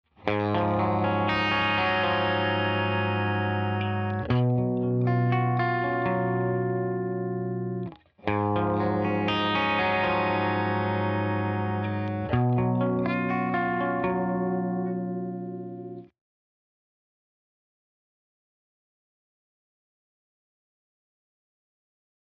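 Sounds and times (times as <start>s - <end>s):
clean processed guitar riff: 0.2s - 16.1s.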